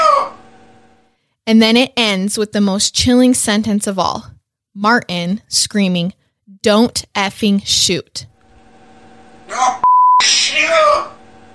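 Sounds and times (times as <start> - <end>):
parrot mimicking agitated speech: 0.0 - 0.4, 9.5 - 11.2
speech: 1.5 - 8.3, 9.5 - 11.2
censor bleep tone: 9.8 - 10.3.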